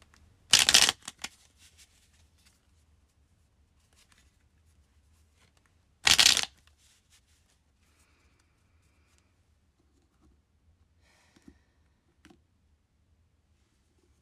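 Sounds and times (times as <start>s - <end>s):
tarot cards being shuffled: 0.5s - 2.6s, 5.4s - 7.2s.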